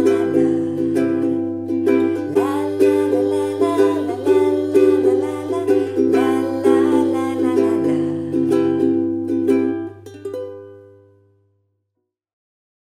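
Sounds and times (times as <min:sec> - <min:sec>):
person singing: 0:00.0 - 0:09.8
ukulele music: 0:00.0 - 0:11.4.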